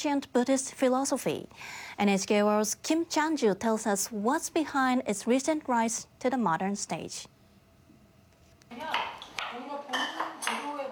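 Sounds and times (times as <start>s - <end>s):
speech: 0.0s - 7.3s, 8.7s - 9.1s
dishes, pots and cutlery clattering in a kitchen during a cooking class in Busan: 9.9s - 10.8s.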